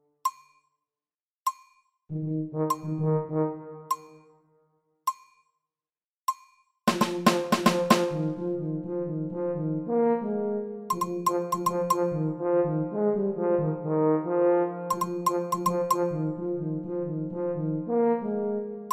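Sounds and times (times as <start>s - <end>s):
tuba: 2.1s - 4.2s, 6.9s - 18.9s.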